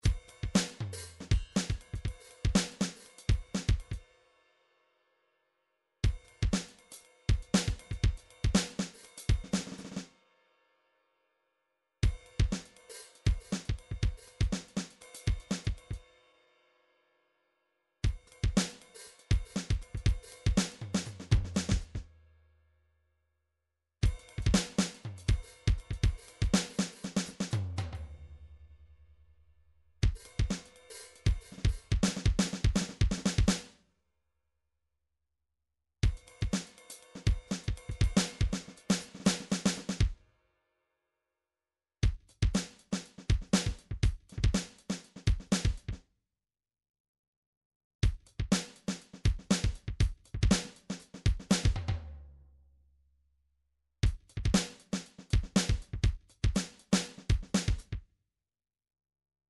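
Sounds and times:
MIDI drum pattern: 0.0s - 4.0s, 6.0s - 10.0s, 12.0s - 16.0s, 18.0s - 22.1s, 24.0s - 28.4s, 30.0s - 33.7s, 36.0s - 40.2s, 42.0s - 46.0s, 48.0s - 52.2s, 54.0s - 58.0s.

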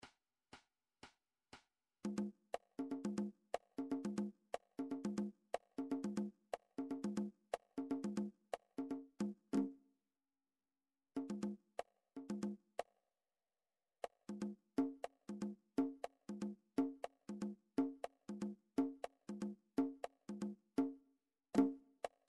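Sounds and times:
MIDI conga drum pattern: 2.0s - 9.7s, 11.2s - 11.6s, 12.2s - 12.6s, 14.0s - 21.0s, 21.6s - 22.2s.

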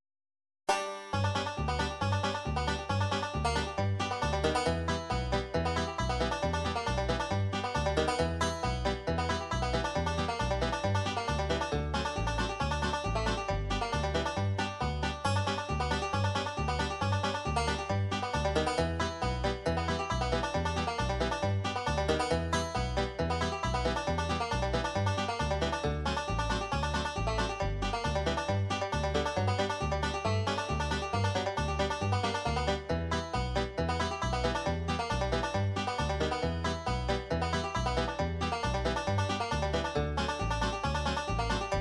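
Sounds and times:
bluegrass music: 0.7s - 41.8s.

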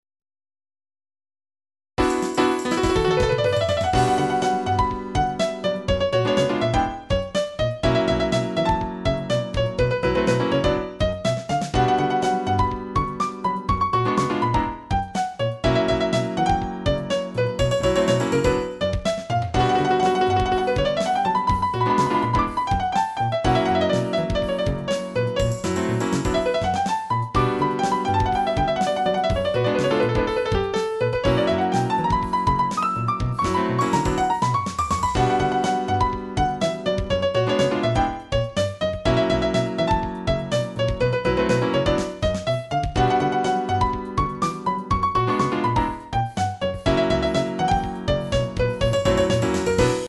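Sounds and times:
piano: 2.0s - 50.0s.

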